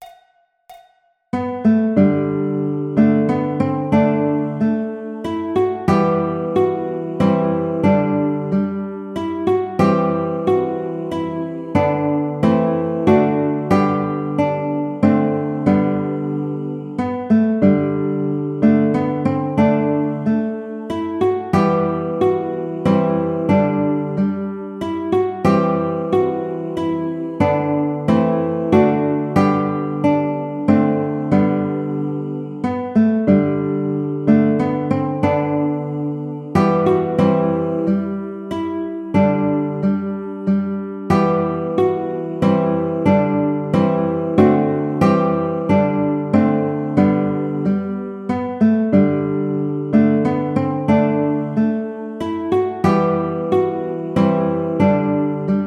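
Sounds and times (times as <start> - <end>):
baritone ukulele: 1.3 - 55.6.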